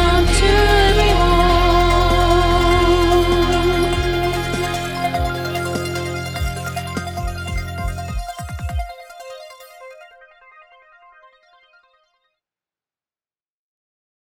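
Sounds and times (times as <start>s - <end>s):
soprano singing a carol: 0.0s - 6.4s.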